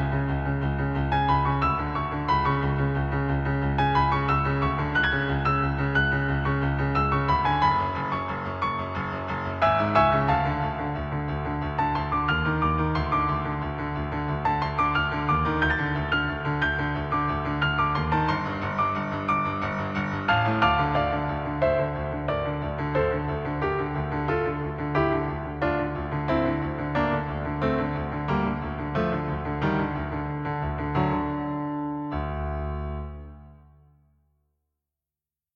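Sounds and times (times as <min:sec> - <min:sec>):
boss battle piano: 0:00.0 - 0:34.3.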